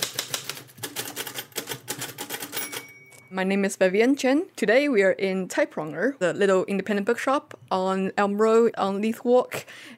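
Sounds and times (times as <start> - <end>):
typewriter keys being struck: 0.0 - 3.3
speech: 3.3 - 9.9.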